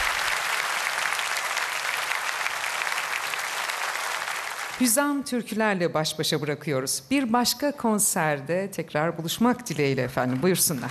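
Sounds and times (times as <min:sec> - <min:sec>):
audience applause at the close of a Turkish folk-song concert: 0:00.0 - 0:04.8
speech: 0:04.8 - 0:10.8.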